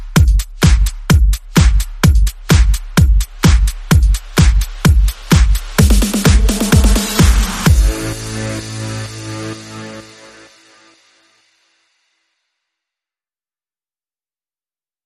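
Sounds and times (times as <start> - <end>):
bass: 0.0 - 11.1
beat: 0.0 - 11.1.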